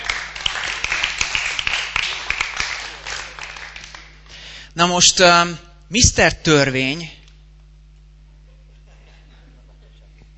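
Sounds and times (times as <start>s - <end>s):
audience applause: 0.0s - 4.3s
speech: 4.8s - 7.2s.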